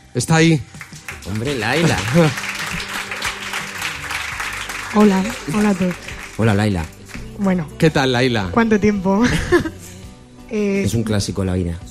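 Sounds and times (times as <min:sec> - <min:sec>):
speech: 0:00.2 - 0:02.5, 0:04.9 - 0:09.8, 0:10.5 - 0:11.8
audience applause: 0:00.7 - 0:07.4
laughter: 0:01.2 - 0:06.7, 0:09.2 - 0:09.9.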